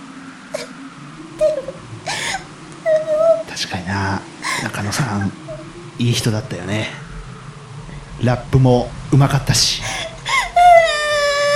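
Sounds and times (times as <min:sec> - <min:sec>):
low hum: 0:00.0 - 0:11.5
whimpering sobs and wails: 0:01.4 - 0:03.5, 0:04.4 - 0:05.7, 0:09.8 - 0:11.5
speech: 0:03.6 - 0:05.4, 0:06.0 - 0:07.0, 0:08.2 - 0:10.1.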